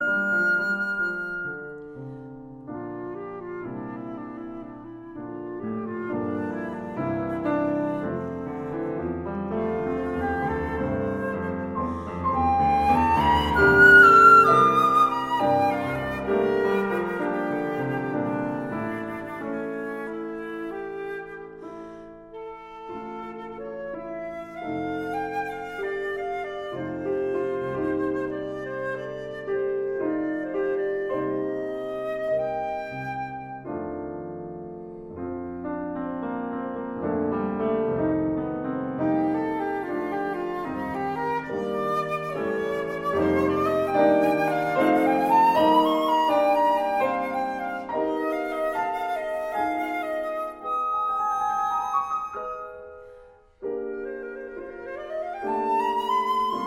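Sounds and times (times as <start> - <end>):
flute: 0.0 - 56.6
piano: 0.0 - 56.6.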